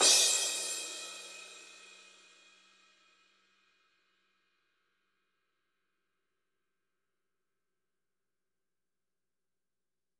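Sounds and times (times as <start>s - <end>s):
cymbal: 0.0s - 4.2s.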